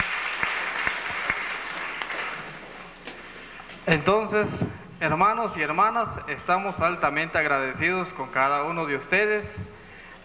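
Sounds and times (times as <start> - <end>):
audience applause: 0.0 - 3.0
speech: 3.9 - 9.7.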